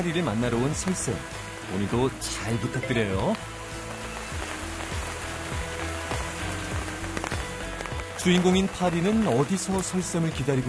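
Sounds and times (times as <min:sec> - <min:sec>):
speech: 0:00.0 - 0:03.6, 0:08.2 - 0:10.6
drips and splashes: 0:00.0 - 0:10.6
heavy monsoon rain pouring down: 0:00.0 - 0:10.6.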